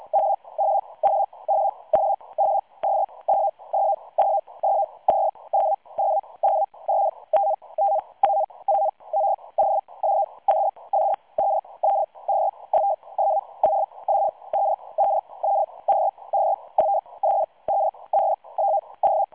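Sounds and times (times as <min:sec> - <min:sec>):
SITOR-A radioteletype signal at 100 baud with 170 Hz shift: 0:00.0 - 0:19.3.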